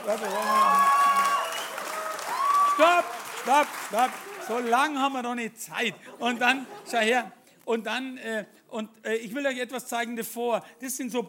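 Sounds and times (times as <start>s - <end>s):
speech: 0.0s - 0.9s, 2.8s - 11.2s
cheers and whoops: 0.0s - 3.3s
audience applause: 0.0s - 5.0s
laughter: 5.8s - 7.3s.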